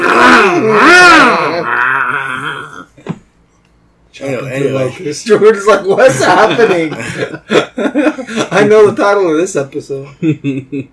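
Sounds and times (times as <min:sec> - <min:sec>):
voice imitating a chainsaw revving: 0:00.0 - 0:02.8
speech: 0:04.2 - 0:10.9
laughter: 0:05.8 - 0:09.0.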